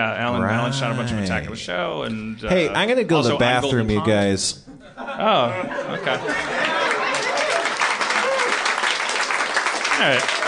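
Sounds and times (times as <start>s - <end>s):
speech: 0.0s - 6.7s, 10.0s - 10.4s
laughter: 4.7s - 8.6s
audience applause: 6.3s - 10.4s.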